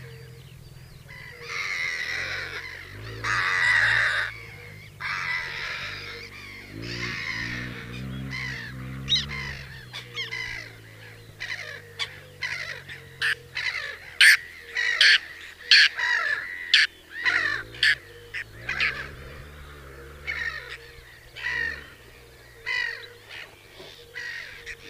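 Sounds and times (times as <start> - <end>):
whiskered tern calling: 0.0 - 24.8.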